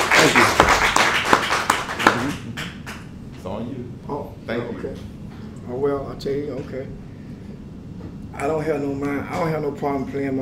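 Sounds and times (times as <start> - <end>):
audience applause: 0.0 - 3.1
speech: 4.5 - 7.0, 8.4 - 10.3.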